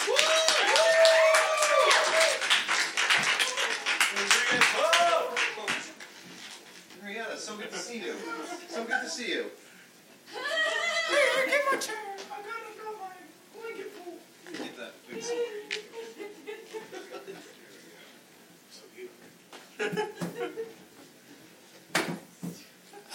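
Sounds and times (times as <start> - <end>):
audience applause: 0.0 - 6.2
laughter: 8.1 - 9.4, 10.3 - 12.0, 15.2 - 17.8, 19.8 - 20.8.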